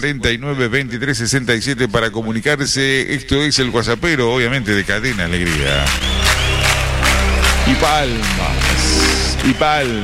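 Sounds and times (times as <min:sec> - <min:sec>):
speech: 0:00.0 - 0:06.2, 0:07.7 - 0:08.8, 0:09.4 - 0:10.0
people clapping: 0:04.1 - 0:10.0
people cheering: 0:04.9 - 0:10.0.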